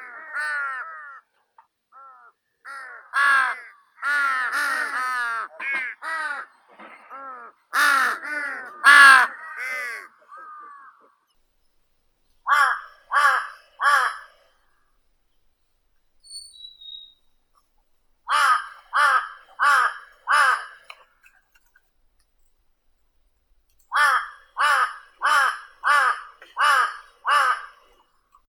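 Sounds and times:
large-billed crow Corvus macrorhynchos: 0.0 - 11.3, 12.5 - 14.9, 18.3 - 21.2, 23.9 - 28.2.

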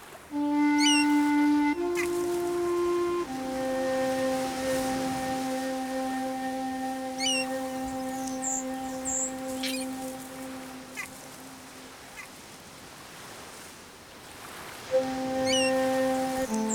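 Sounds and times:
ocean waves: 0.0 - 16.7
seagulls calling: 0.4 - 11.9, 14.9 - 16.7.

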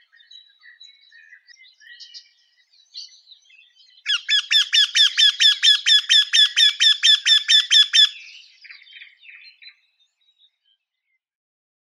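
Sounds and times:
Eurasian wryneck Jynx torquilla calling: 4.0 - 9.4.

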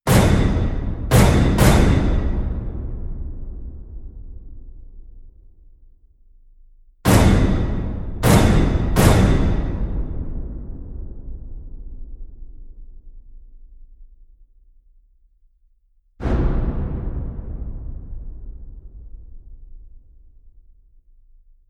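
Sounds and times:
big drum hits: 0.1 - 5.6, 7.0 - 12.8, 16.2 - 21.4.

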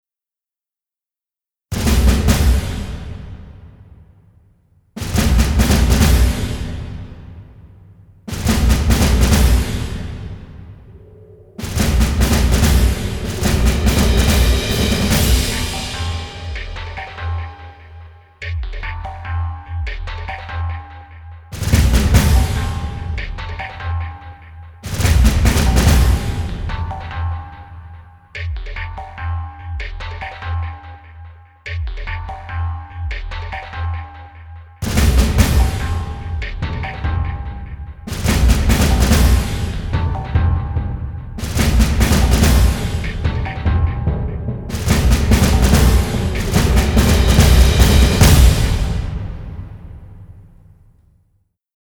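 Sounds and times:
drums: 1.7 - 51.0.

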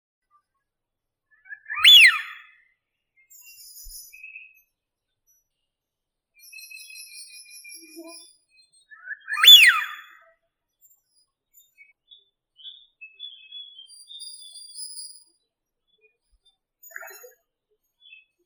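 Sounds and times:
Anas penelope calls: 1.6 - 2.4, 9.3 - 10.0.

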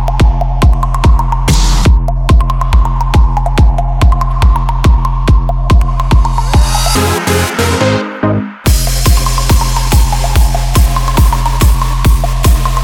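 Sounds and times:
142 bpm running beat music mix: 0.0 - 12.8.

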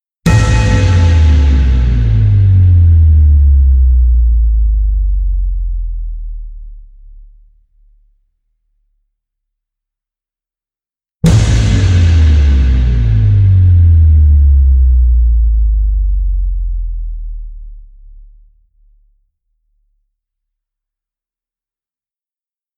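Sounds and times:
heavy bass music: 0.3 - 7.1, 11.2 - 18.1.

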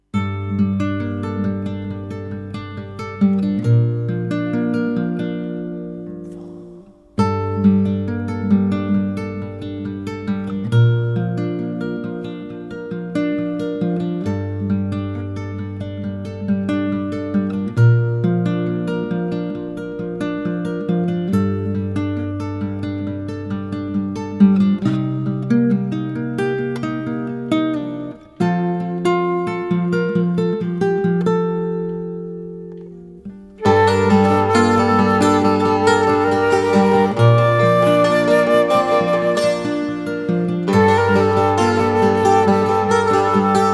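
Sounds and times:
classical guitar: 0.0 - 43.7
bouzouki: 33.6 - 43.7
flute: 33.6 - 43.7.

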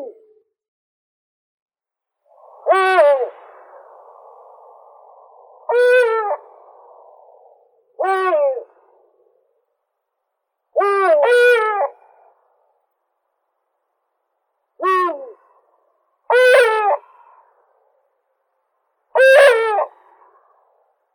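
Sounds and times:
Eurasian eagle-owl Bubo bubo: 2.4 - 9.2, 10.8 - 12.1, 14.8 - 15.4, 16.3 - 17.1, 19.2 - 20.0.

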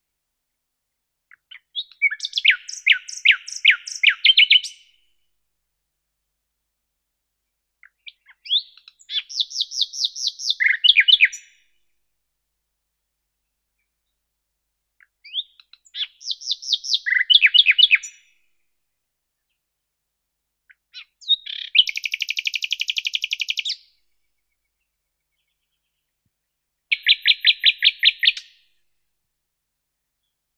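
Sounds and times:
common nightingale Luscinia megarhynchos singing: 1.3 - 5.1, 7.8 - 11.6, 15.0 - 18.4, 20.7 - 26.2, 26.9 - 28.7.

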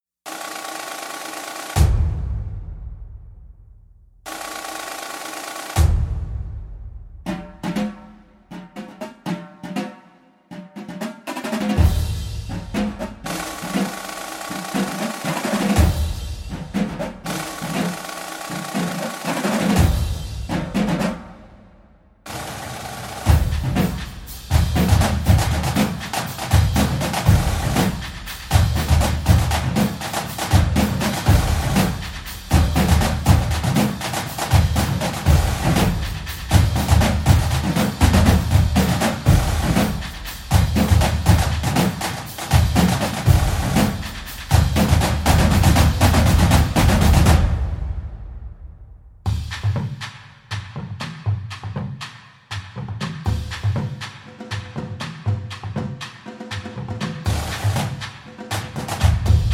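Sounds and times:
drumline playing: 0.3 - 2.7, 4.3 - 6.6, 7.2 - 21.7, 22.3 - 48.6, 49.3 - 59.5.

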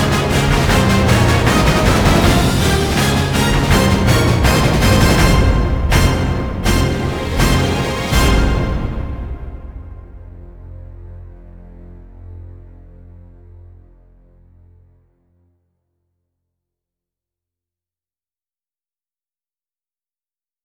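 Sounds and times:
choir singing: 0.0 - 10.2.

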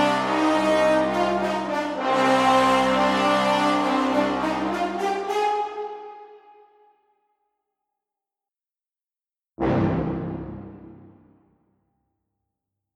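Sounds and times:
brass stem: 0.0 - 7.0, 9.6 - 11.5.

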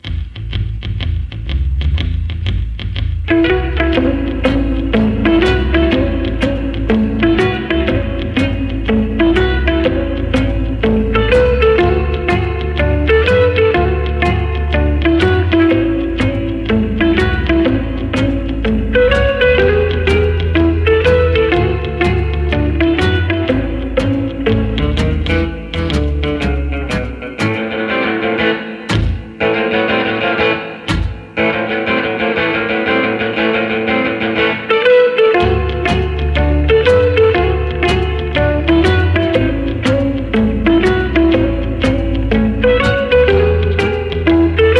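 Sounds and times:
blues instrumental: 0.0 - 44.7.

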